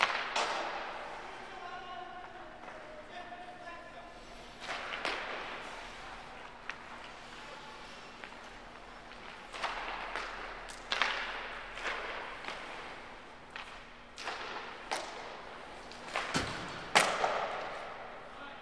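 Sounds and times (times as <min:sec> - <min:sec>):
hockey practice: 0:00.0 - 0:18.6.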